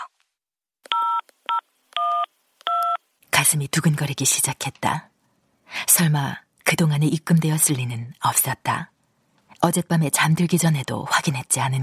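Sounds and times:
telephone keypad tones entering password: 0:00.9 - 0:03.0
speech: 0:03.5 - 0:05.1, 0:05.7 - 0:08.9, 0:09.6 - 0:11.8.

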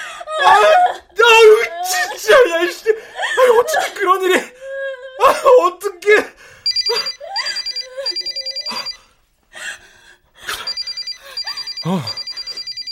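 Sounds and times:
speech: 0:00.4 - 0:04.6, 0:05.2 - 0:07.2, 0:11.8 - 0:12.2
telephone ringing: 0:06.7 - 0:09.0, 0:10.6 - 0:12.8.

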